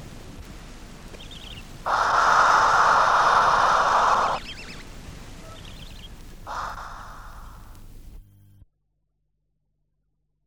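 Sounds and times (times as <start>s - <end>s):
owl giving a harsh hissing screech: 1.4s - 7.8s.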